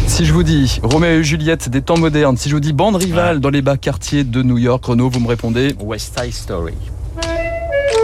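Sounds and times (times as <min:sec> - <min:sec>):
speech: 0:00.2 - 0:06.9
finger snapping: 0:07.2 - 0:08.0.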